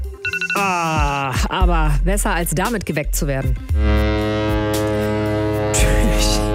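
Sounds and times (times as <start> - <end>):
speech: 0.6 - 4.3
ship foghorn blast: 3.7 - 6.5.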